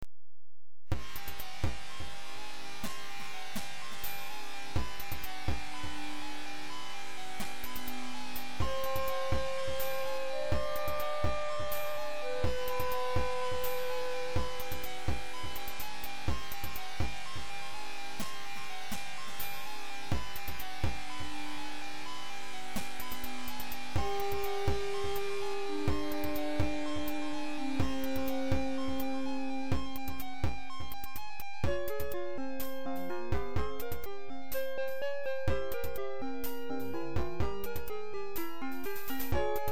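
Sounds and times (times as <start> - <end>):
drum test: 0.9 - 39.7.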